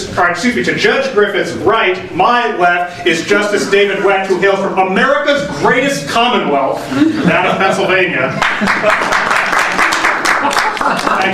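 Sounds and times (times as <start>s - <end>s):
speech: 0.2s - 9.3s, 10.8s - 11.3s
laughter: 6.8s - 11.3s
crowd applauding: 8.4s - 11.3s.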